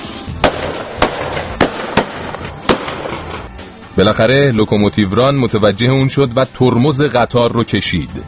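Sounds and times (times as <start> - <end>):
rifle shots fired into the air: 0.4 - 3.5
speech: 4.0 - 8.2.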